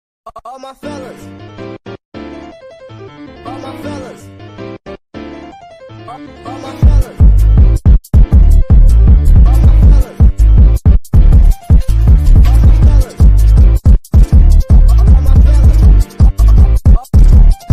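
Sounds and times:
boosted bass: 0:06.8 - 0:17.7.

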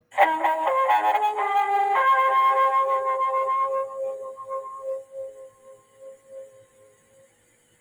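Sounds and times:
dramatic electric guitar: 0:00.1 - 0:05.0.

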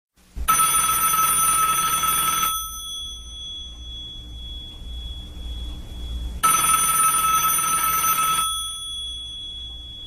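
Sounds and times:
telephone: 0:00.5 - 0:03.3, 0:06.4 - 0:09.5.

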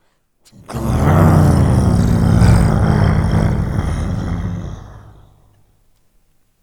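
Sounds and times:
rumbling: 0:00.6 - 0:05.5.

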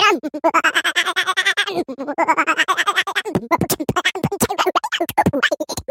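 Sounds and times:
goofy laugh: 0:00.2 - 0:05.8.

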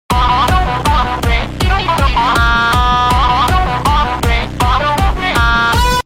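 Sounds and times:
wimpy ahh vocal: 0:00.1 - 0:06.0.

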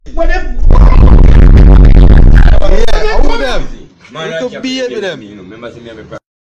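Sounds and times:
bass: 0:00.1 - 0:03.9.

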